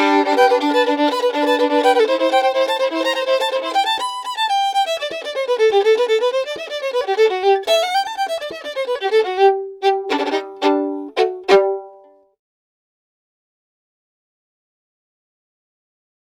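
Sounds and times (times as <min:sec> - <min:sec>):
fiddle: 0:00.0 - 0:12.3.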